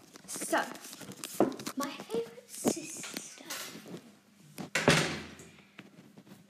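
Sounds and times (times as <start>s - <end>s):
speech: 0.5s - 0.9s
door being shut: 4.7s - 5.5s.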